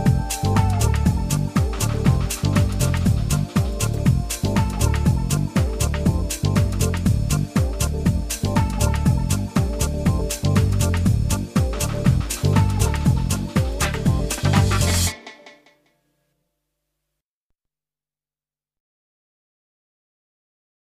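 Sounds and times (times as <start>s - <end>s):
jungle music: 0.0s - 15.8s.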